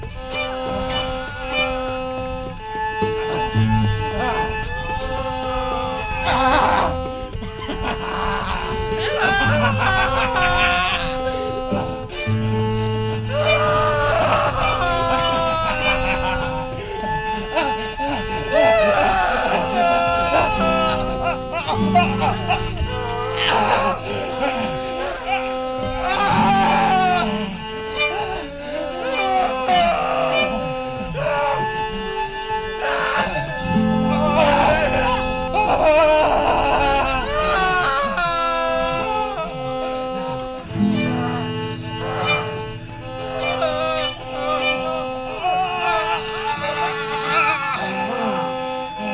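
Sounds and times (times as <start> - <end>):
laughter: 0.3 - 49.1
person screaming: 5.2 - 7.0, 7.9 - 11.9, 13.3 - 16.7, 18.5 - 31.8, 32.7 - 49.1.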